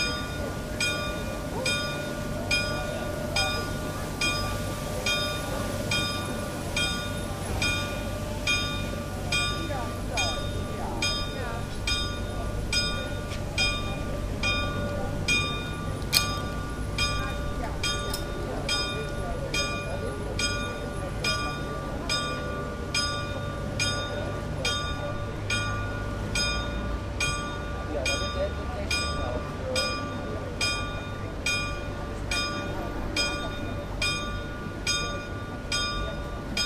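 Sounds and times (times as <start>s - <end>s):
chapel bells ringing in Bickendorf: 0.0s - 36.6s.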